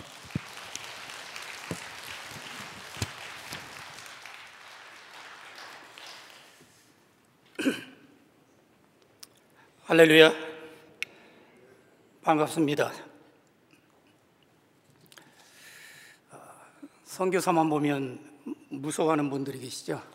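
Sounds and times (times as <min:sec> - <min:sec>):
audience applause: 0:00.0 - 0:06.9
speech: 0:07.6 - 0:07.9, 0:09.9 - 0:10.4, 0:12.3 - 0:13.1, 0:17.2 - 0:20.1.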